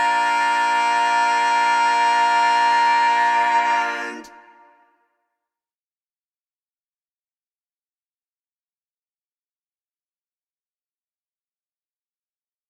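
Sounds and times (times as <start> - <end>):
tenor singing a cappella: 0.0 - 4.8.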